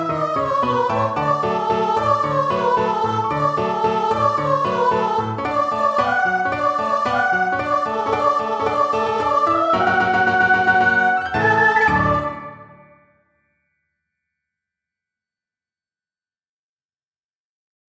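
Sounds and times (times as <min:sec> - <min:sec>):
choir singing: 0:00.0 - 0:13.0.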